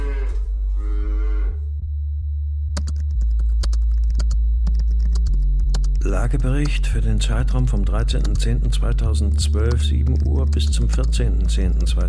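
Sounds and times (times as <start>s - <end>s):
calving cow mooing: 0.0s - 1.7s
low steady hum: 0.0s - 12.0s
rapid irregular clicking: 2.8s - 12.0s
speech: 6.1s - 12.0s.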